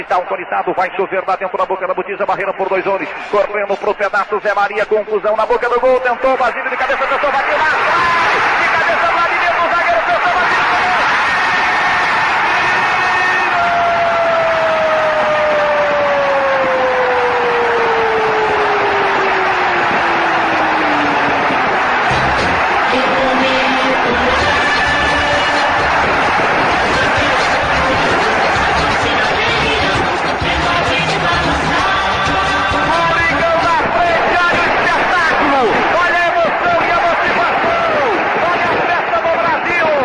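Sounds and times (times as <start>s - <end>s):
speech: 0.0s - 9.1s
football stadium crowd roaring after goal: 0.0s - 40.0s
horn notes sliding downward: 15.6s - 34.8s.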